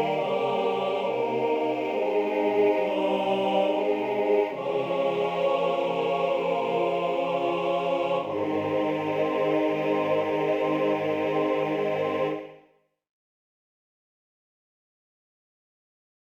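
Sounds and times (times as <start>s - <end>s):
chorus singing: 0.0s - 12.7s.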